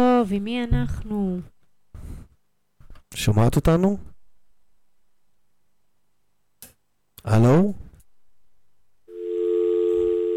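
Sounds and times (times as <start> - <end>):
speech: 0.0 - 1.6, 3.1 - 4.1, 7.2 - 7.8
phone line tone after call disconnected: 9.1 - 10.3.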